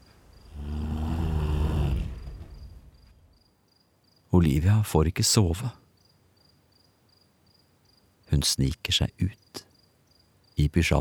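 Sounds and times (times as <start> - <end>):
loud rough snore: 0.5 - 2.3
speech: 4.4 - 5.8, 8.3 - 9.6, 10.6 - 10.9.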